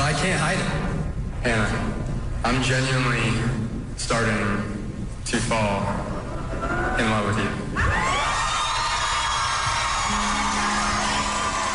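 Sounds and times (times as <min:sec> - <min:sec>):
speech: 0:00.2 - 0:00.8, 0:01.4 - 0:04.7, 0:05.3 - 0:08.1
live studio audience cheering: 0:07.8 - 0:11.7.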